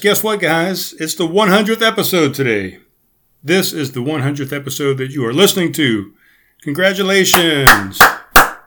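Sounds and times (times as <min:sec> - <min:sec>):
speech: 0:00.0 - 0:02.8, 0:03.4 - 0:08.2
one person clapping hands: 0:07.6 - 0:08.5.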